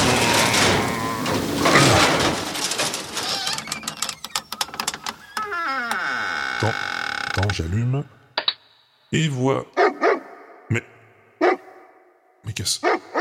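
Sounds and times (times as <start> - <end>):
scraping and jingling: 0.0 - 5.2
door creaking: 0.0 - 7.7
speech: 6.7 - 8.2, 9.1 - 9.8, 10.7 - 10.9, 12.5 - 13.0.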